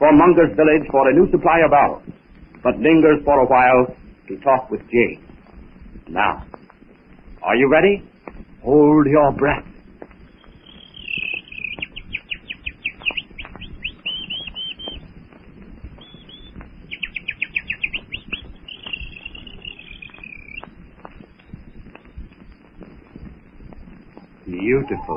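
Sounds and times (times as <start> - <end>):
speech: 0.0 - 5.2, 6.1 - 6.6, 7.4 - 9.7, 24.6 - 25.1
jungle night insects: 0.0 - 25.1
jungle night birds: 0.1 - 25.1.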